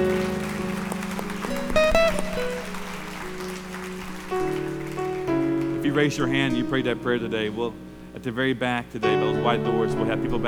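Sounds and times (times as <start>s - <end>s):
audience applause: 0.0s - 7.0s
speech: 6.0s - 10.4s.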